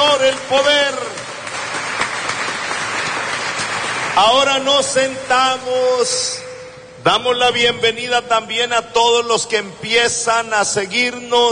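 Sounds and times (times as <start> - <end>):
worshippers applauding during a church service: 0.0 - 5.7
speech: 0.5 - 1.0, 4.2 - 6.4, 7.0 - 11.5.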